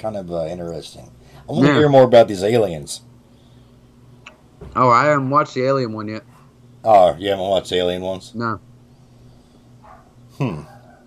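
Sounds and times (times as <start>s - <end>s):
speech: 0.0s - 3.1s, 4.7s - 8.7s, 10.4s - 10.7s
dog barking: 9.8s - 11.0s.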